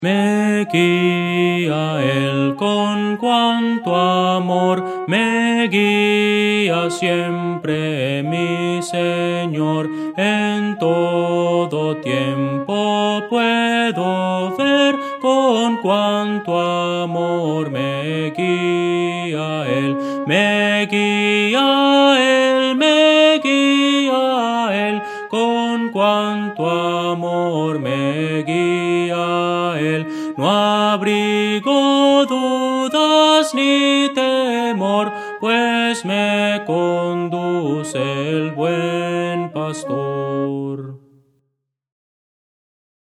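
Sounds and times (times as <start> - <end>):
soprano singing: 0.0 - 41.0.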